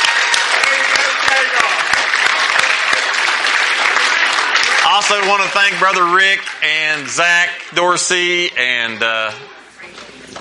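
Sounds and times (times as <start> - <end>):
audience applause: 0.0 - 8.4
speech: 5.0 - 10.0.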